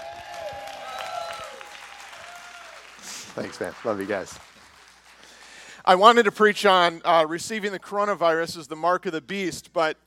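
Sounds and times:
large crowd clapping enthusiastically: 0:00.0 - 0:05.7
speech: 0:03.4 - 0:04.5, 0:05.9 - 0:10.0.

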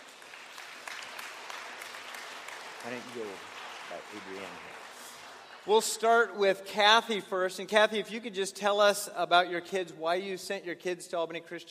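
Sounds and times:
audience applause at a school event welcoming speakers: 0:00.0 - 0:06.3
speech: 0:02.8 - 0:04.9, 0:05.6 - 0:11.6.

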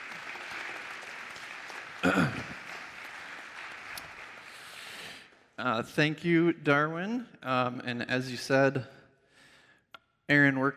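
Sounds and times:
applause: 0:00.0 - 0:05.6
speech: 0:02.0 - 0:02.4, 0:05.6 - 0:09.0, 0:10.3 - 0:10.7.

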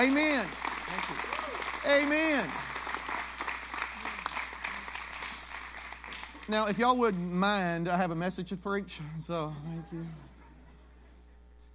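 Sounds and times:
speech: 0:00.0 - 0:02.7, 0:06.5 - 0:10.3
crowd clapping: 0:00.0 - 0:07.7.

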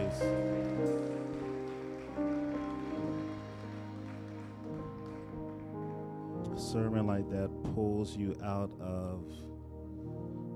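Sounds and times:
audience clapping: 0:00.0 - 0:06.7
speech: 0:06.7 - 0:09.5.

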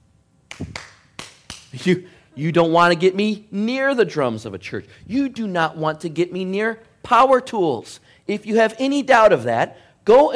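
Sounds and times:
hands clapping out of rhythm: 0:00.5 - 0:01.9
speech: 0:01.8 - 0:10.3.

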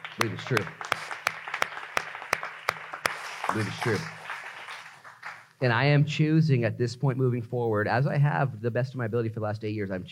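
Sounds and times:
rhythmic clapping: 0:00.0 - 0:05.6
speech: 0:00.2 - 0:01.0, 0:03.5 - 0:04.2, 0:05.6 - 0:10.1.

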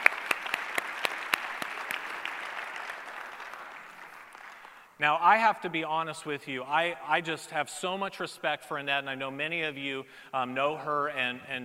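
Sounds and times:
audience applause: 0:00.0 - 0:04.8
speech: 0:05.0 - 0:11.6.

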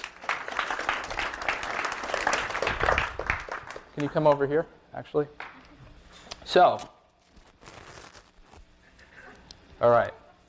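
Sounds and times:
audience applause: 0:00.0 - 0:04.4
speech: 0:04.0 - 0:05.4, 0:06.5 - 0:07.0, 0:09.8 - 0:10.2.

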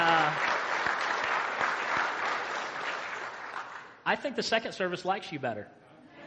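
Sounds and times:
audience applause: 0:00.0 - 0:04.0
speech: 0:04.1 - 0:05.8.

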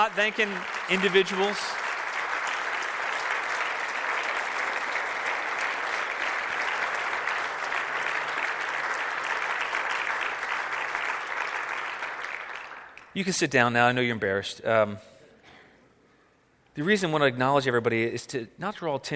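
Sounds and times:
speech: 0:00.0 - 0:01.8, 0:13.2 - 0:15.1, 0:16.8 - 0:19.1
audience applauding: 0:00.0 - 0:13.1.

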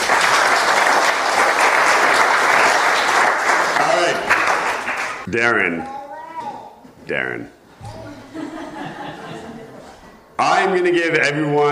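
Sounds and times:
round of applause: 0:00.0 - 0:05.3
speech: 0:05.3 - 0:06.0, 0:07.1 - 0:08.0, 0:10.4 - 0:11.6
laughter: 0:07.9 - 0:10.2.

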